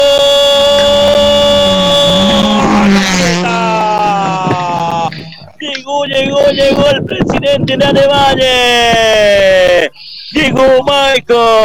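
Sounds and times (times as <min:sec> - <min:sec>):
racing car engine approaching: 0:00.0 - 0:06.4
laughter: 0:00.6 - 0:11.0
speech: 0:06.5 - 0:11.6.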